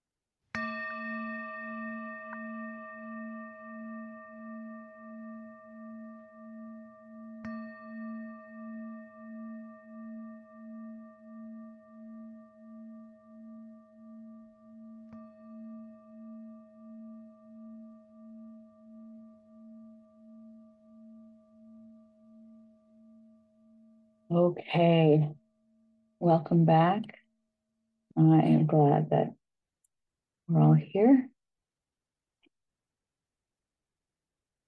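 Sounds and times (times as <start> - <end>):
meditation bell struck and ringing: 0.5 - 24.3
speech: 24.3 - 25.4, 26.2 - 27.2, 28.2 - 29.4, 30.5 - 31.2.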